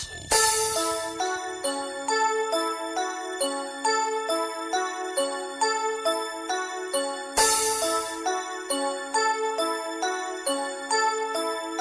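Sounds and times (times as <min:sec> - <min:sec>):
bells ringing: 0:00.4 - 0:11.8.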